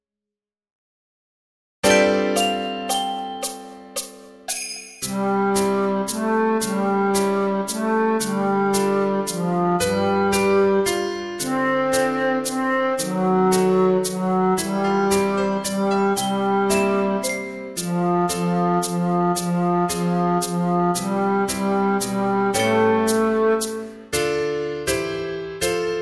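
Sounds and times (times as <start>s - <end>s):
Christmas song bass accompaniment: 1.8s - 26.0s.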